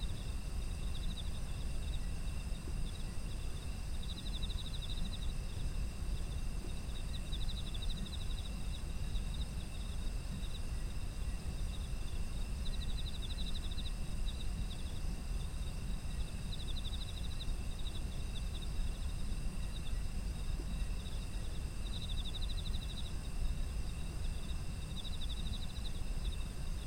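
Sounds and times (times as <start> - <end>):
insect chorus: 0.0 - 26.8.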